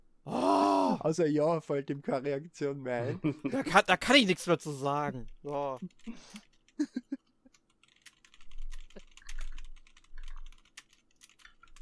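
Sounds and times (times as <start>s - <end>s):
speech: 1.0s - 7.2s
typing on a computer keyboard: 5.2s - 6.8s, 7.5s - 11.8s.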